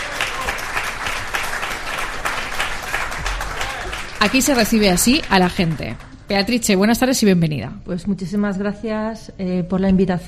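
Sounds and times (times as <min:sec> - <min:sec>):
room full of people applauding: 0:00.0 - 0:06.6
speech: 0:04.2 - 0:10.2.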